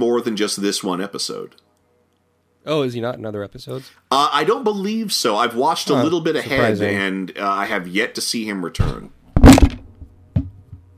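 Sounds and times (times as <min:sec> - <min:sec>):
speech: 0:00.0 - 0:01.7, 0:02.6 - 0:09.2
microphone knocked over: 0:08.8 - 0:10.9.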